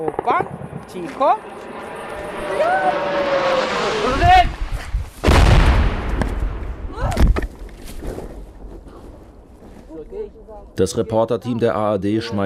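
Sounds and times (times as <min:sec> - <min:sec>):
speech: 0:00.0 - 0:04.5, 0:10.4 - 0:12.4
air defence booming blasts: 0:00.0 - 0:11.0
approaching drone engine hiss: 0:00.5 - 0:06.6.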